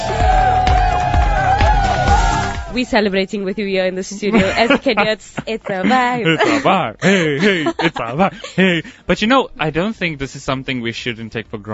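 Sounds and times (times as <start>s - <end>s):
applause and cheering: 0.0s - 2.8s
speech: 2.8s - 11.7s
laughter: 4.1s - 9.0s.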